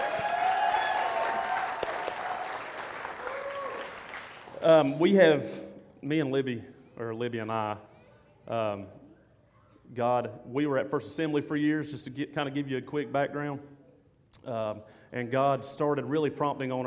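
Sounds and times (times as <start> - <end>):
audience at a church gathering applauding: 0.0 - 5.0
speech: 4.6 - 9.0, 9.9 - 13.7, 14.4 - 16.8.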